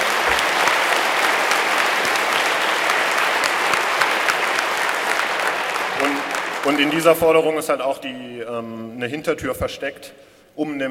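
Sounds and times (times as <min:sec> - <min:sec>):
audience applause: 0:00.0 - 0:07.3
speech: 0:06.7 - 0:10.9.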